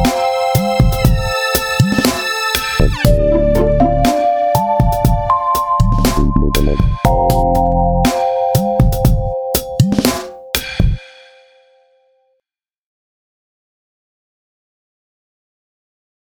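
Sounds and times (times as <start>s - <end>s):
slow ambience: 0.0s - 11.8s.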